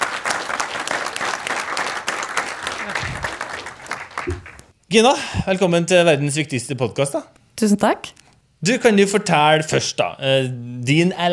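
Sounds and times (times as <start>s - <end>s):
group applauding a guest: 0.0s - 4.7s
speech: 4.2s - 11.3s.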